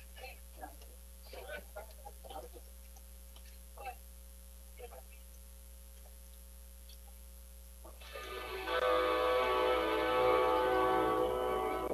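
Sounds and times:
train horn: 0:08.7 - 0:11.9.

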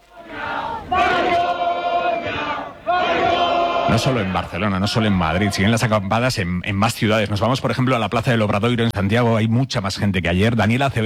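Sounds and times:
large protest camp crowd shouting angrily: 0:00.0 - 0:05.9
speech: 0:03.9 - 0:11.0.

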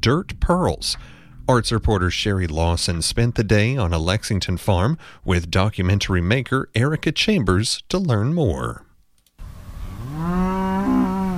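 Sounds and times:
speech: 0:00.0 - 0:08.8
dairy cow mooing in a pasture on a Lexington farm: 0:09.9 - 0:11.3.

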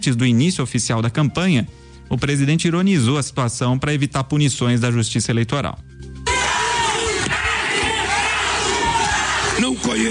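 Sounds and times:
speech: 0:00.0 - 0:06.2
crowd shouting a candidate's name: 0:06.3 - 0:09.8.

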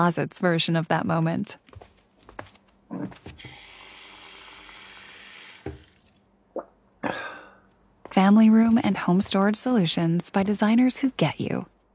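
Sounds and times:
speech: 0:00.0 - 0:01.8, 0:08.3 - 0:11.7
tap water filling a glass: 0:03.4 - 0:06.2
water drips: 0:03.4 - 0:06.7.

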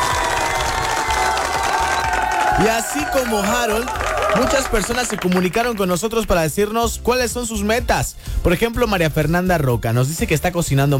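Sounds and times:
applause sound effect: 0:00.0 - 0:06.0
speech: 0:02.6 - 0:10.9.

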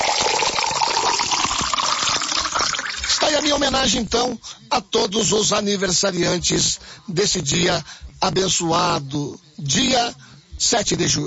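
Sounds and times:
spring water pouring into a drinking glass: 0:00.0 - 0:03.4
speech: 0:03.4 - 0:11.2.

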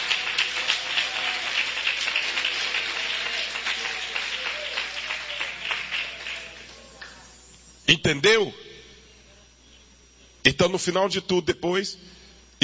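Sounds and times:
audience clapping hands: 0:00.0 - 0:07.3
speech: 0:07.9 - 0:08.6, 0:10.5 - 0:12.6.

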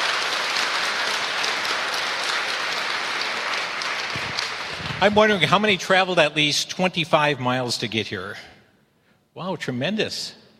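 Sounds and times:
auditorium audience applause: 0:00.0 - 0:05.8
speech: 0:05.0 - 0:08.5, 0:09.4 - 0:10.4.

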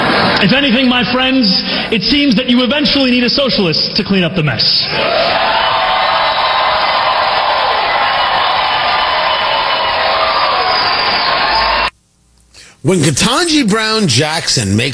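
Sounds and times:
crowd cheering: 0:00.0 - 0:00.9, 0:04.9 - 0:11.9
speech: 0:00.4 - 0:05.7, 0:12.8 - 0:14.9.

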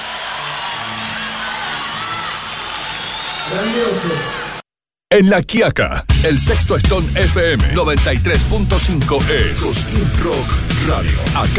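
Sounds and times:
crowd applause and cheering: 0:00.0 - 0:04.6
speech: 0:03.5 - 0:04.4, 0:05.1 - 0:11.5.

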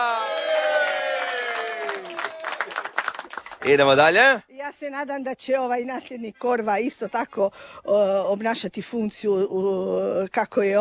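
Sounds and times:
audience applause at a public gathering: 0:00.0 - 0:04.4
speech: 0:03.6 - 0:10.8.

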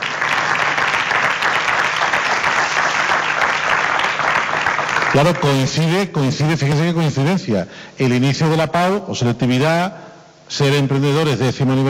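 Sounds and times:
audience applause: 0:00.0 - 0:05.5
speech: 0:05.2 - 0:11.8.

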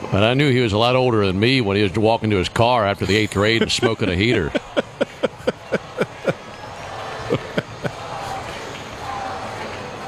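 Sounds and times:
speech: 0:00.1 - 0:04.6
laughter: 0:02.9 - 0:08.6
baseball stadium crowd chanting: 0:05.7 - 0:10.0.

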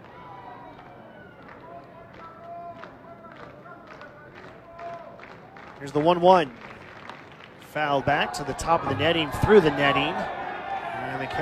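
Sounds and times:
sparse ballpark crowd clapping rhythmically: 0:00.0 - 0:08.2
speech: 0:05.8 - 0:06.7, 0:07.7 - 0:10.4, 0:11.2 - 0:11.3.

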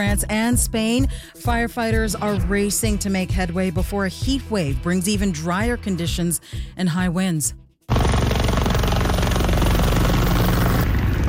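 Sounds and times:
speech: 0:00.0 - 0:08.0
helicopter flying over wildfire: 0:07.9 - 0:11.2.

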